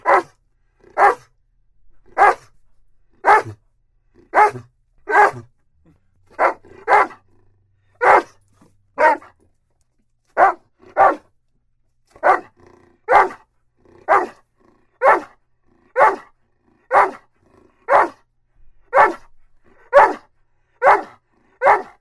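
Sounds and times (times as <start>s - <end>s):
dog barking: 0.0s - 1.3s, 2.1s - 2.5s, 3.2s - 3.6s, 4.2s - 5.5s, 6.3s - 7.3s, 8.0s - 8.4s, 9.0s - 9.4s, 10.4s - 11.3s, 12.1s - 14.4s, 15.0s - 18.3s, 18.9s - 22.0s.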